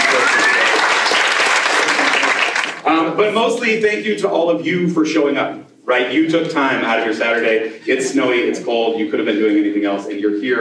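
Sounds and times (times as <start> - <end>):
audience applause: 0.0 - 2.8
speech: 3.2 - 10.5.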